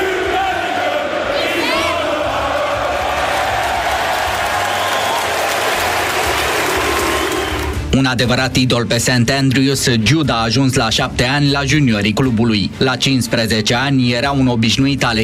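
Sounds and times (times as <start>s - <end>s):
Championship football fans cheering in the stands: 0.0s - 7.9s
speech: 7.9s - 15.2s.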